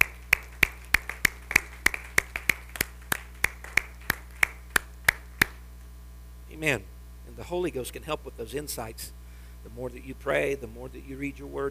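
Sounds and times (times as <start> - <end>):
audience hand clapping: 0.0 - 5.6
speech: 6.6 - 11.7.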